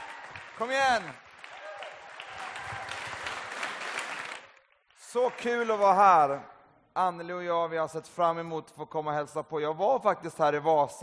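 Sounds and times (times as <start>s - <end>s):
audience applause: 0.0s - 6.0s
speech: 0.6s - 1.2s, 5.1s - 11.0s.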